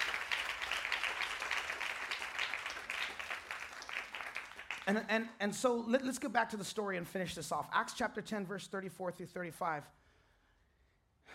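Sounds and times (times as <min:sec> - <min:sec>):
crowd clapping: 0:00.0 - 0:05.1
speech: 0:04.9 - 0:10.0.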